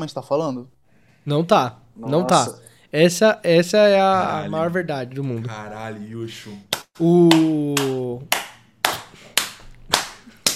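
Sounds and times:
speech: 0.0s - 8.4s
hand claps: 6.7s - 10.5s.

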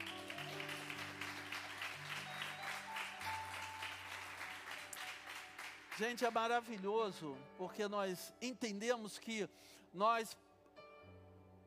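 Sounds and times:
audience applauding: 0.0s - 6.9s
speech: 6.0s - 10.4s.

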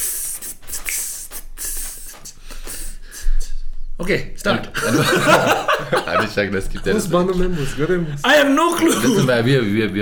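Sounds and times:
person hissing rhythmically imitating snake jazz: 0.0s - 3.4s
speech: 4.0s - 10.0s
laughter: 4.8s - 8.2s.

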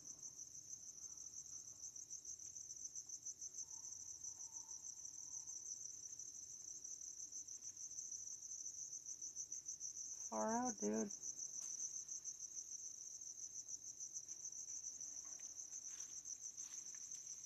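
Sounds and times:
crickets chirping: 0.0s - 17.4s
speech: 10.3s - 11.2s.

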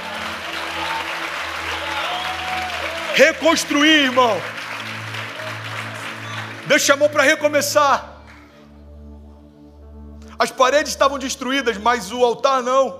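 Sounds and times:
audience applauding: 0.0s - 8.6s
speech: 3.2s - 4.6s, 6.7s - 8.1s, 10.4s - 12.9s.

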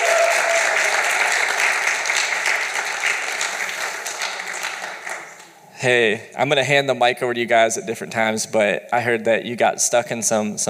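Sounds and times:
crowd applause: 0.0s - 5.6s
speech: 5.8s - 10.6s.

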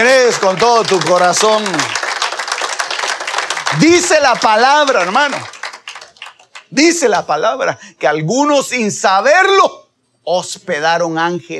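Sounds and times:
speech: 0.0s - 2.0s, 3.7s - 5.6s, 6.7s - 11.5s
audience applause: 0.0s - 6.7s.

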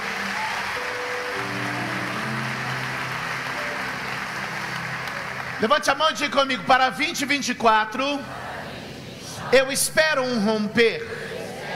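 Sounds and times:
audience applauding: 0.0s - 7.0s
speech: 5.6s - 8.4s, 9.5s - 11.2s.

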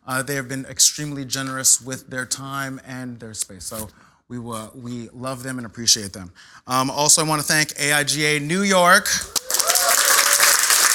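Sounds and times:
speech: 0.1s - 9.4s
person whooping: 9.3s - 10.9s
audience applause: 9.4s - 10.9s.

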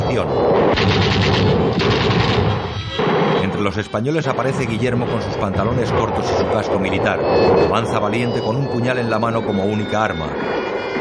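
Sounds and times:
speech: 0.1s - 10.6s
Russian drum-magazine submachine guns firing in a snowy battle: 0.7s - 3.5s.

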